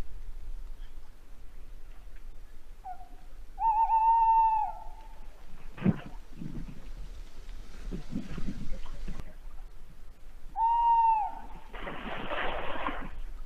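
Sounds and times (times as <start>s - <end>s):
tawny owl calling: 2.8s - 5.4s, 10.5s - 11.7s.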